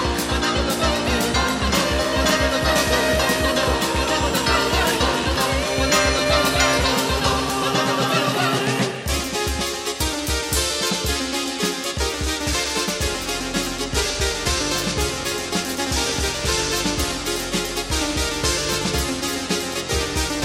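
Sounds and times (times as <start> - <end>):
music noise: 0.0 - 20.4.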